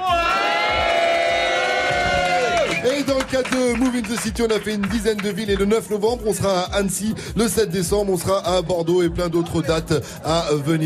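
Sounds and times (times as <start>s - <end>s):
audience cheering and whooping: 0.0s - 5.6s
speech: 3.1s - 10.8s.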